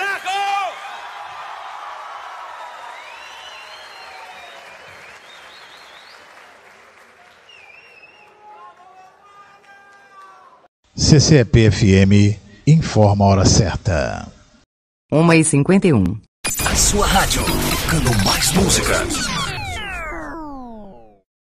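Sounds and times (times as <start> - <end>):
audience applause: 0.0 - 10.7
speech: 11.1 - 14.4, 15.1 - 16.2, 16.8 - 19.4.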